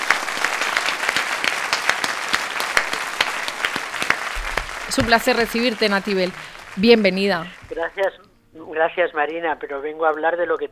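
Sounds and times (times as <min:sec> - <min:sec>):
audience applause: 0:00.0 - 0:08.2
speech: 0:04.9 - 0:10.7.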